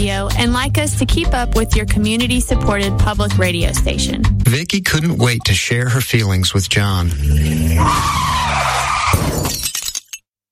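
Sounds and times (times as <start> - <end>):
speech: 0.3 - 9.7
car tires screeching in a skid: 7.2 - 9.3
car hitting a pedestrian, crunching debris: 9.0 - 10.2.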